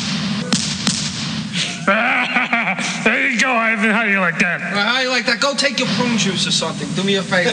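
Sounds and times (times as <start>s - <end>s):
shotgun fire: 0.0s - 1.8s
laughter: 1.6s - 7.5s
speech: 3.4s - 7.5s.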